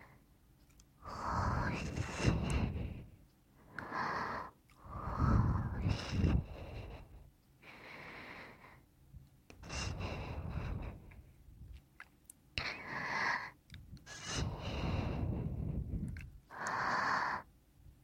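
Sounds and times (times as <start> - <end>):
forceful breathing through the nose and mouth: 1.0 - 8.8, 9.6 - 11.3, 12.8 - 17.5.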